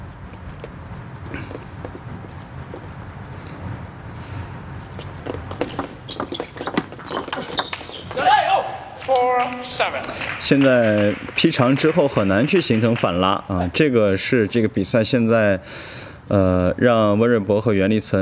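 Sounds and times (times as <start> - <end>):
table tennis ball bouncing during serves in a match: 5.5 - 8.2
match commentator talking: 9.0 - 14.9
speech: 9.4 - 18.1.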